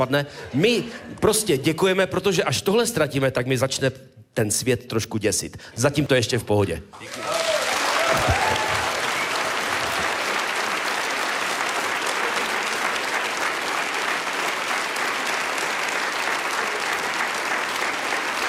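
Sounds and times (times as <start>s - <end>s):
speech: 0.0s - 7.4s
crowd applause: 7.0s - 18.4s.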